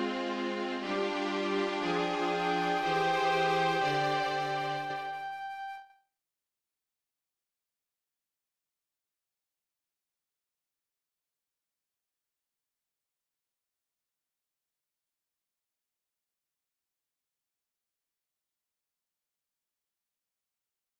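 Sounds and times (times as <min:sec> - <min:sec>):
flute: 0:00.0 - 0:06.1.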